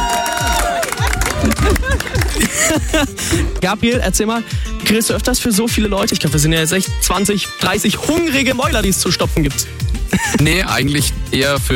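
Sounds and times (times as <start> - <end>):
loud overlapping voices cheering and whooping: 0.0 - 2.5
group of people clapping: 0.0 - 3.6
laughter: 0.5 - 3.6, 10.1 - 10.9
speech: 2.7 - 11.7.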